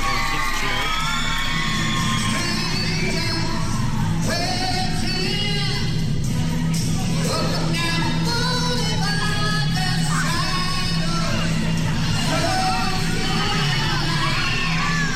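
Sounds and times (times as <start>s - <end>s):
crowd cheering and shouting: 0.0s - 15.1s.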